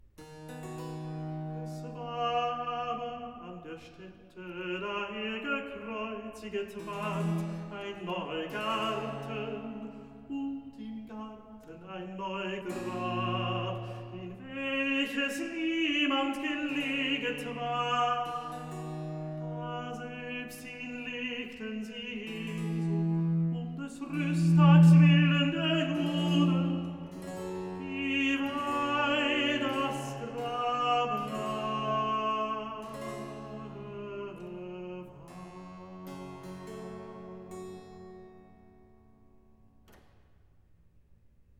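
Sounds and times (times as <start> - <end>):
recitative singing: 1.3 - 36.7.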